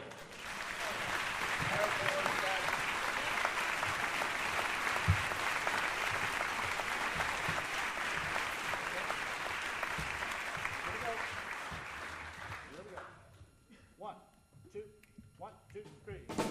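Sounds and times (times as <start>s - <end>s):
audience applause welcoming a performer on stage: 0.0s - 13.1s.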